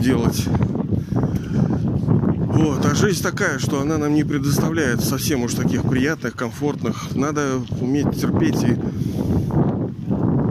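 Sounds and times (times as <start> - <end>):
speech: 0.0 - 0.8, 1.4 - 9.6
strong wind blowing into the microphone: 0.0 - 10.4.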